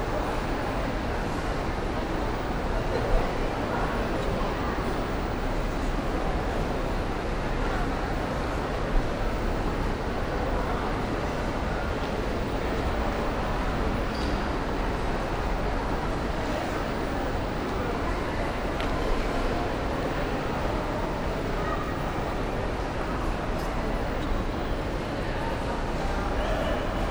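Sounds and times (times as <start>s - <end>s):
crowd in a large shopping mall: 0.0s - 27.0s.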